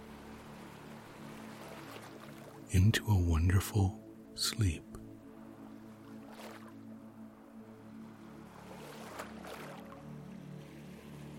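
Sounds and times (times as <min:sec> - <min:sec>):
sea waves: 0:00.0 - 0:11.3
speech: 0:02.7 - 0:05.0.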